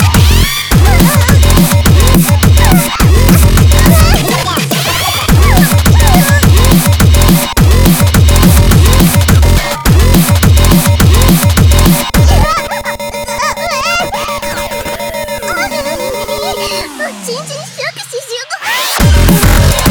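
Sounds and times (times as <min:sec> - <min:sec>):
small mini bass drum: 0:00.0 - 0:04.5, 0:05.3 - 0:12.5
laughter: 0:00.0 - 0:09.8, 0:12.1 - 0:19.8.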